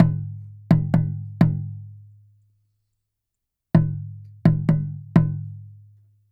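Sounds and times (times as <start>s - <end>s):
small taiko drum from Asia: 0.0s - 2.0s, 3.8s - 5.7s.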